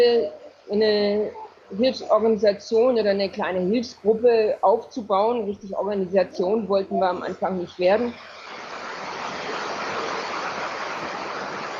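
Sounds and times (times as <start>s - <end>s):
speech: 0.0s - 8.4s
downpour on a corrugated iron roof: 8.2s - 11.7s.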